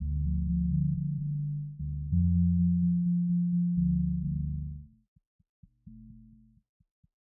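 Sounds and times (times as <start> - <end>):
soft bass loop: 0.0 - 4.9.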